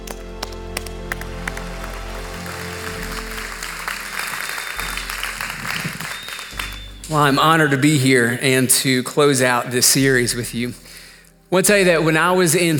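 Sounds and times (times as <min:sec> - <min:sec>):
audience applause welcoming a pastor at a Crosspoint church service: 0:00.0 - 0:07.1
sustained musical tones: 0:00.1 - 0:09.0
speech: 0:07.1 - 0:10.8, 0:11.5 - 0:12.7.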